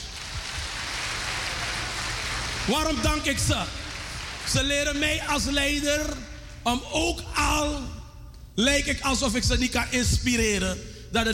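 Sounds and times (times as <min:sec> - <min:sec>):
audience applause: 0:00.0 - 0:04.8
speech: 0:02.6 - 0:03.8, 0:04.5 - 0:07.9, 0:08.6 - 0:11.3.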